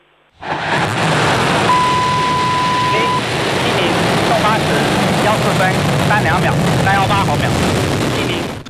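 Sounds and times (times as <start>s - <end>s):
steady tone: 0.0s - 4.4s
Long March 7 Y11 rocket igniting and lifting off: 0.3s - 8.6s
voices: 1.7s - 7.5s.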